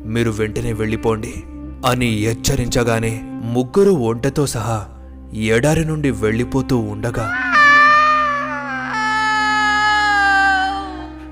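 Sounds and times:
speech: 0.1s - 7.4s
witch's terrifying scream, horror story sound effect: 7.2s - 11.3s.

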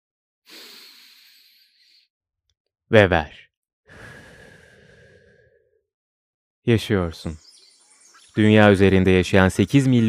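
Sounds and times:
person inhaling: 0.5s - 2.1s, 3.9s - 5.8s
speech: 2.9s - 3.4s, 6.6s - 7.4s, 8.4s - 10.0s.

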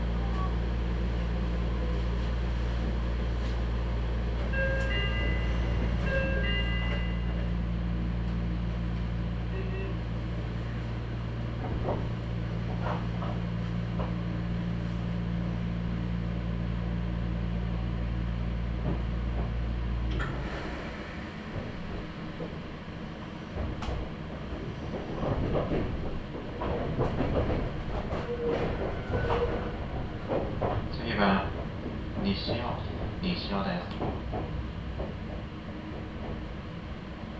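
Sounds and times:
Meitetsu Nishio Line train car hum: 0.0s - 37.3s
chime tone: 4.6s - 7.4s
clattering and knocks on a Meitetsu Nishio Line train: 23.5s - 36.5s.

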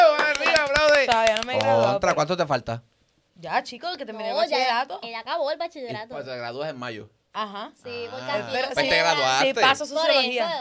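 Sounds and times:
rhythmic hand clapping: 0.0s - 1.9s
speech: 2.0s - 10.5s.

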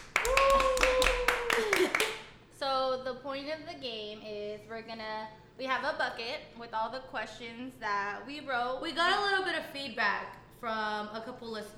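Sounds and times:
hand clapping: 0.0s - 2.3s
speech: 3.3s - 11.7s.

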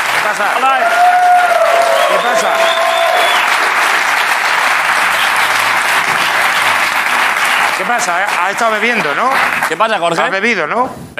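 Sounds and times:
applause: 0.0s - 10.3s
speech: 0.3s - 1.1s, 7.8s - 11.1s.

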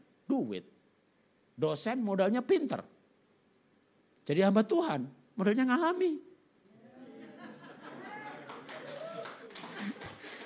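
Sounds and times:
speech: 0.3s - 0.8s, 1.6s - 2.9s, 4.3s - 6.3s
laughter: 6.8s - 10.4s
audience clapping: 7.9s - 10.4s.

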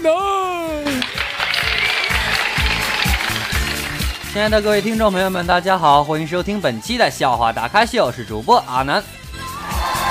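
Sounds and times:
crowd applause: 0.8s - 5.6s, 9.5s - 10.0s
speech: 4.4s - 9.2s.

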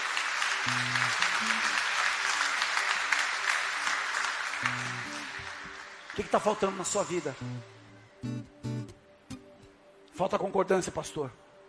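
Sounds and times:
audience applause: 0.0s - 7.4s
low sustained keyboard notes: 0.6s - 1.8s, 4.6s - 5.5s, 7.1s - 11.6s
speech: 6.2s - 8.4s, 10.2s - 11.4s.

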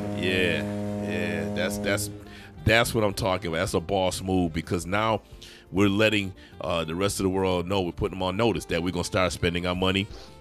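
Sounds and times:
49er foghorn sound effect: 0.0s - 2.6s
speech: 0.2s - 0.8s, 1.7s - 10.4s.

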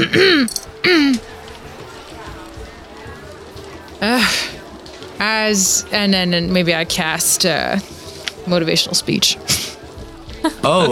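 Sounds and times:
person clearing throat: 0.0s - 1.2s
speech: 0.1s - 1.3s, 5.2s - 9.6s, 10.4s - 10.9s.

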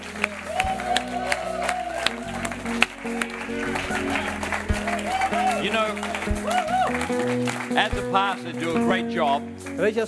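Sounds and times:
audience applauding: 0.0s - 10.0s
sustained low musical tones: 0.0s - 10.0s
audience whoops: 0.1s - 7.3s
speech: 5.7s - 10.0s.

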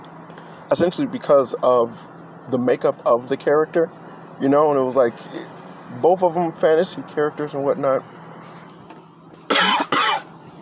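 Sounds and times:
speech: 0.7s - 8.6s
harsh coughs from someone choking on sweet tea: 9.5s - 10.3s.

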